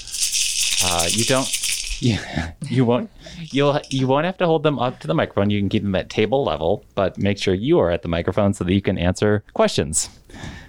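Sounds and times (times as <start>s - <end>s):
hand shakers rattling as game buzzers: 0.0s - 2.2s, 3.3s - 4.1s
speech: 0.8s - 10.6s.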